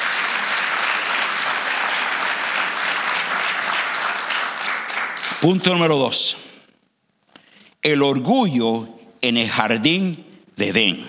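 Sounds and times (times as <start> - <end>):
audience applauding loudly: 0.0 - 6.0
speech: 5.4 - 6.4, 7.8 - 11.0.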